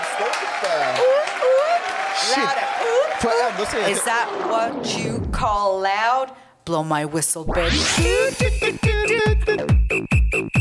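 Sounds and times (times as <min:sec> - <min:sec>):
audience clapping: 0:00.0 - 0:04.4
high whoops: 0:00.3 - 0:03.7
speech: 0:00.6 - 0:01.1, 0:02.3 - 0:09.7.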